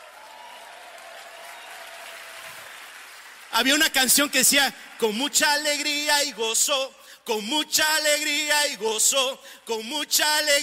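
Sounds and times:
audience applauding: 0:00.0 - 0:06.2
speech: 0:03.6 - 0:10.6.

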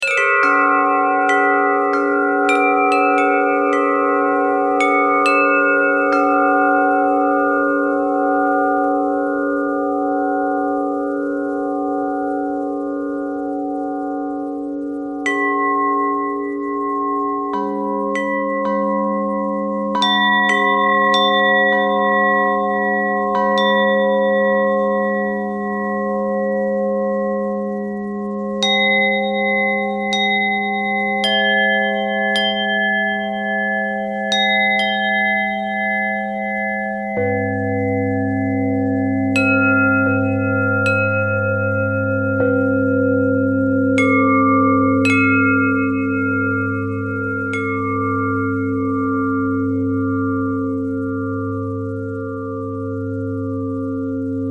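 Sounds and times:
bell: 0:00.0 - 0:54.4.

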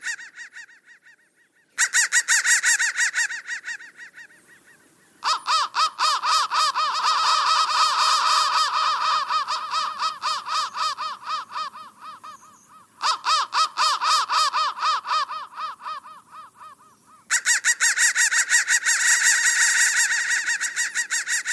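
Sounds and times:
crow chorus cawing: 0:00.0 - 0:21.5.

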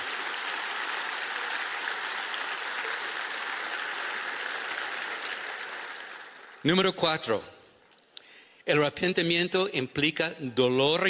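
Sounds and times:
audience applause: 0:00.0 - 0:07.0
speech: 0:06.6 - 0:07.6, 0:08.7 - 0:11.0.

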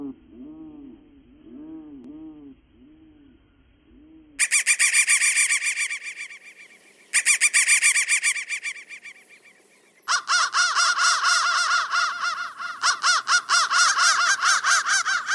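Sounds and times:
crow cawing: 0:04.4 - 0:15.3.

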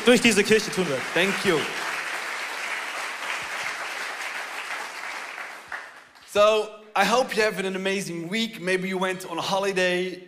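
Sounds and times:
speech: 0:00.0 - 0:01.9, 0:06.3 - 0:10.2
applause: 0:00.0 - 0:06.4.

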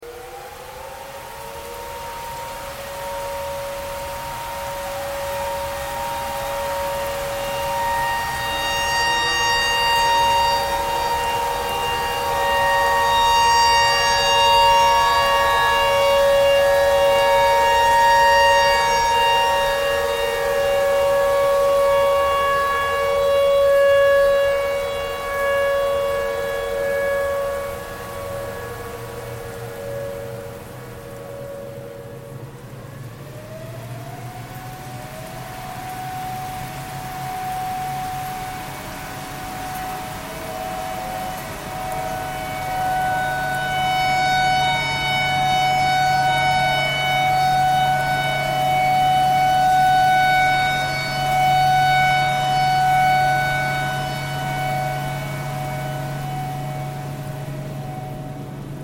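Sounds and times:
tornado siren: 0:00.0 - 0:58.8.

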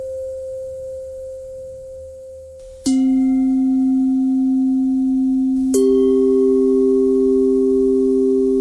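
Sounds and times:
pentatonic bell melody: 0:02.8 - 0:08.5.

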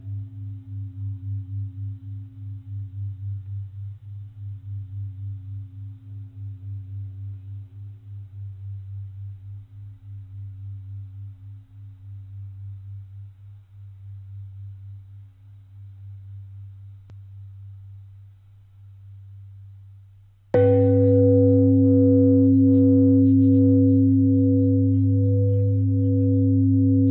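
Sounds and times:
long bell tones: 0:20.6 - 0:27.0.

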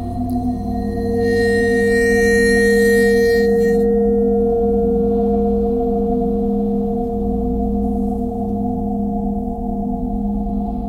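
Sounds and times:
bowed metal vibes playing pentatonic: 0:00.0 - 0:10.7.

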